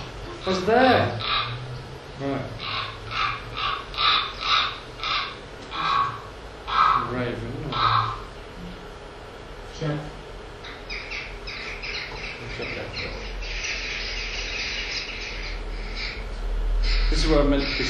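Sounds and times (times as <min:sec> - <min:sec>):
whitethroat song played back at double speed: 0:00.0 - 0:07.0, 0:10.4 - 0:17.8
steady low hum: 0:00.0 - 0:17.8
speech: 0:00.4 - 0:01.6, 0:02.2 - 0:02.6, 0:17.3 - 0:17.8.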